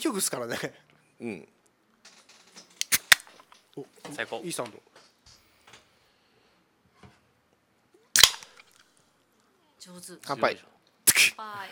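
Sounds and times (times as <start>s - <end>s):
speech: 0.0s - 2.2s, 3.8s - 5.0s, 9.8s - 10.8s, 11.4s - 11.7s
drink can opening: 2.8s - 3.5s, 8.2s - 8.8s.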